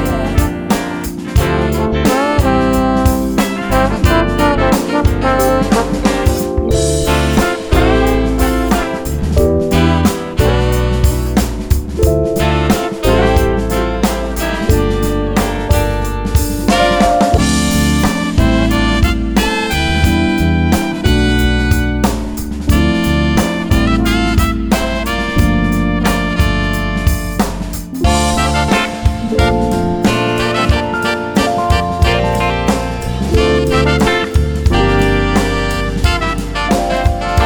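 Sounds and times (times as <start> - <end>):
funk soul ensemble playing: 0.0 - 37.4.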